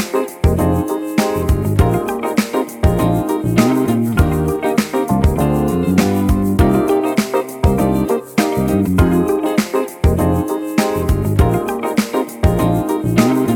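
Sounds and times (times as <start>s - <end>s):
retro chillout music: 0.0s - 13.5s.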